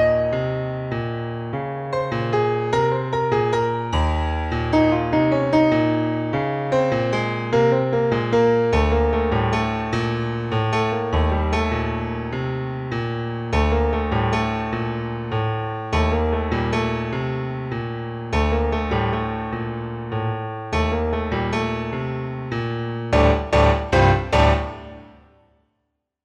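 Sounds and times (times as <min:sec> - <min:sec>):
solo piano Dorian Phrygian exploration: 0:00.0 - 0:25.5.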